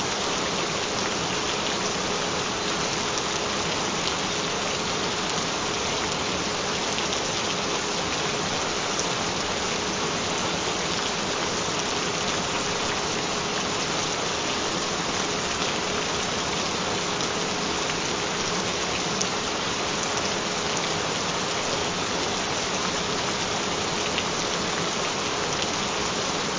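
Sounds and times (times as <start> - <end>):
gentle rain: 0.0 - 26.5.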